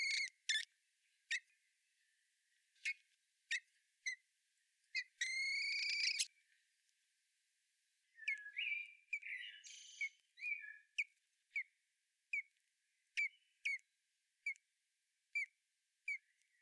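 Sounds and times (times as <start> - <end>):
common blackbird song, Turdus merula: 0.0 - 2.2, 5.0 - 6.5, 8.0 - 11.7, 12.3 - 13.9, 16.1 - 16.6.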